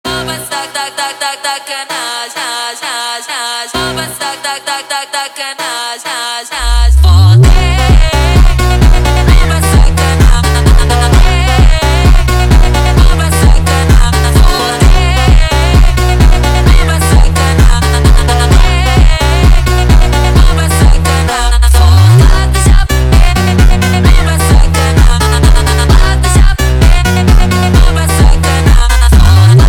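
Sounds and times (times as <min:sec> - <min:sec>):
funk music: 0:07.4 - 0:29.6.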